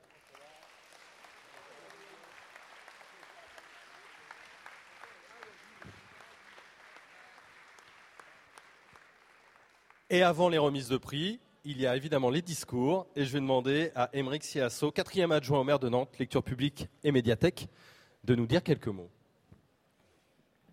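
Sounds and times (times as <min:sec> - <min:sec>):
audience applause: 0:00.0 - 0:10.1
speech: 0:10.1 - 0:19.2.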